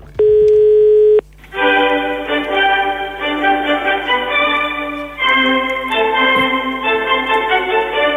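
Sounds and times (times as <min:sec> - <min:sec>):
telephone ringing tone of a call to the Maximos Mansion: 0:00.2 - 0:01.2
dense tonal music-like sound: 0:01.5 - 0:08.1.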